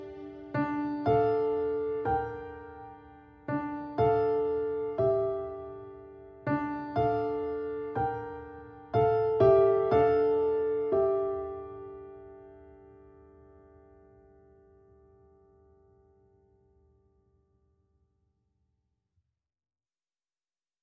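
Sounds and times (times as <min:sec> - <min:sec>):
piano theme: 0:00.0 - 0:16.6.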